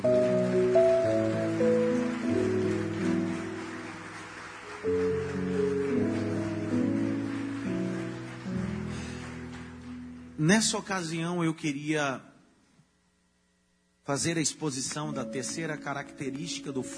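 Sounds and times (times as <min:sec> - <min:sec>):
audience applauding: 0:00.0 - 0:10.4
speech: 0:10.6 - 0:12.3, 0:14.1 - 0:16.9.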